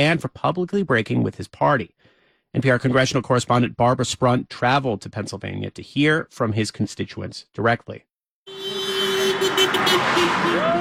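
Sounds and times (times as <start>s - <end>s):
speech: 0.0s - 8.1s, 9.7s - 10.7s
car horn honking on a road: 8.5s - 10.7s
hum of passing traffic: 8.5s - 10.7s.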